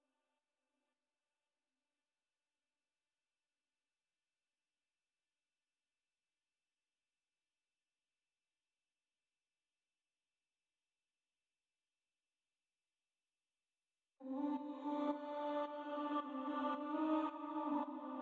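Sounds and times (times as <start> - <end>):
vocal ambience at 110 BPM in G minor: 14.2 - 18.2.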